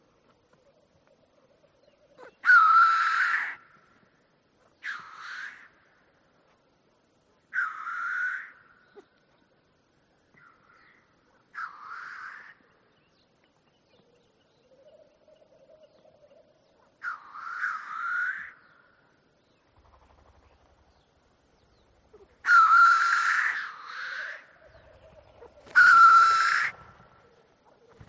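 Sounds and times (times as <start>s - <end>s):
black grouse calling: 0.3s - 3.8s, 7.5s - 9.3s, 10.3s - 12.7s, 14.0s - 18.9s, 19.6s - 28.0s.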